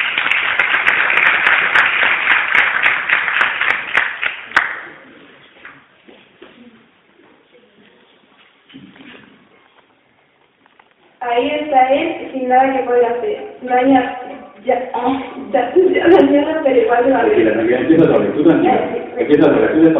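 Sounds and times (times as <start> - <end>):
audience applause: 0.0 - 5.1
quiet shuffling: 5.2 - 11.2
speech: 11.7 - 19.9.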